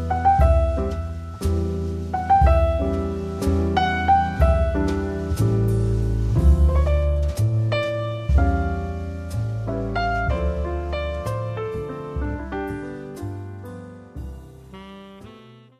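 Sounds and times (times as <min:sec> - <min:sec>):
jazz drums: 0:00.0 - 0:15.5
jazz bass: 0:00.0 - 0:15.7
jazz piano: 0:00.0 - 0:15.7
jazz saxophone: 0:14.6 - 0:15.7.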